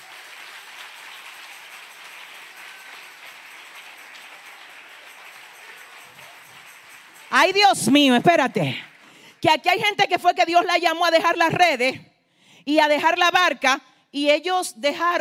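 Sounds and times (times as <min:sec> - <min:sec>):
audience applause: 0:00.0 - 0:09.4
speech: 0:07.4 - 0:15.2.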